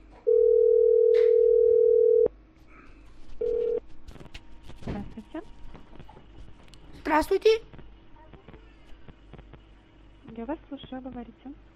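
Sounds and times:
telephone tone after dialing a number: 0.2s - 2.3s, 3.4s - 3.8s
speech: 7.2s - 7.7s, 10.4s - 11.7s.

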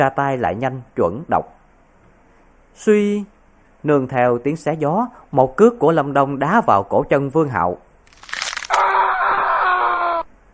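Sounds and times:
speech: 0.0s - 1.6s, 2.8s - 7.8s
bone cracking: 8.1s - 9.2s.

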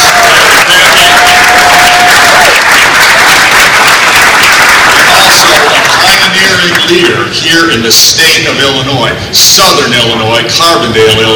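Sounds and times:
audience applause at a Special Olympics 50th anniversary event: 0.0s - 7.0s
speech: 6.9s - 11.3s.

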